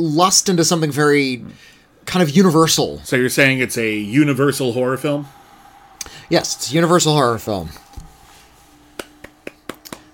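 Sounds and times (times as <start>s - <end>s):
speech: 0.0s - 5.4s, 6.3s - 7.8s
one person clapping for himself: 7.8s - 10.1s.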